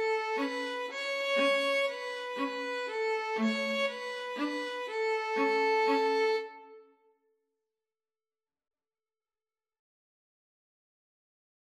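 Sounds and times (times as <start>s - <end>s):
string trio playing: 0.0s - 6.8s.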